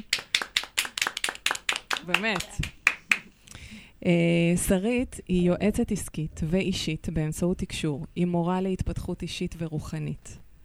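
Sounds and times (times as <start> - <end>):
audience rhythmic clapping: 0.0 - 3.4
speech: 2.1 - 2.8, 4.0 - 10.4.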